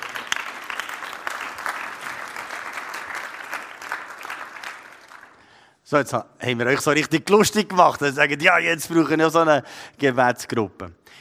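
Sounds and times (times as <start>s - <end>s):
audience applause: 0.0s - 5.4s
speech: 5.9s - 11.1s.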